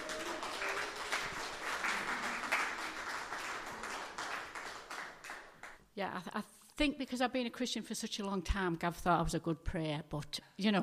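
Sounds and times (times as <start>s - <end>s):
crowd clapping: 0.0s - 5.8s
speech: 6.0s - 10.8s.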